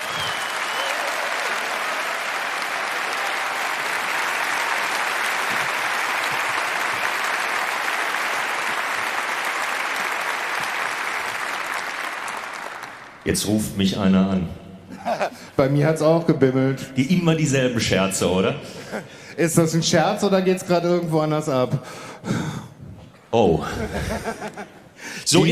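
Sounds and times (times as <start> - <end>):
applause: 0.0 - 13.3
speech: 13.2 - 22.4, 23.3 - 25.5
laughter: 14.9 - 15.5, 23.6 - 24.9.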